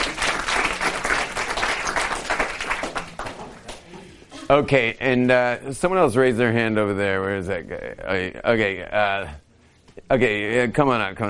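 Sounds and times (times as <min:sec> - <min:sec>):
audience applause for a stage assistant: 0:00.0 - 0:04.0
speech: 0:04.5 - 0:09.4, 0:10.0 - 0:11.2.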